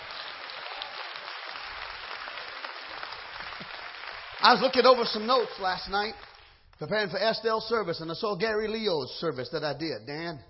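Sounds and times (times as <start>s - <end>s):
crowd clapping: 0.0s - 7.0s
speech: 4.4s - 10.4s.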